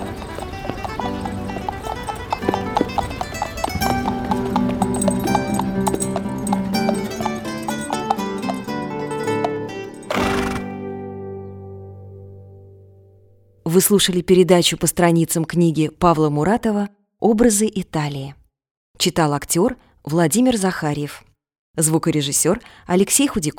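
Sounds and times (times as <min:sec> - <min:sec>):
horse hooves clopping on stone pavement: 0:00.0 - 0:10.8
music with sustained tones: 0:00.0 - 0:13.3
speech: 0:13.8 - 0:18.4, 0:19.0 - 0:23.5.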